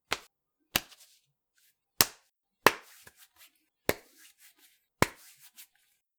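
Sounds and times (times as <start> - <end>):
hands grabbing body: 0.1 - 1.2, 2.0 - 4.3, 5.0 - 5.7.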